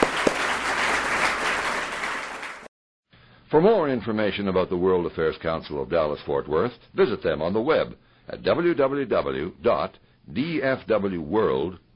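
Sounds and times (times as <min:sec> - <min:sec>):
audience applause: 0:00.0 - 0:02.7
speech: 0:03.5 - 0:11.8.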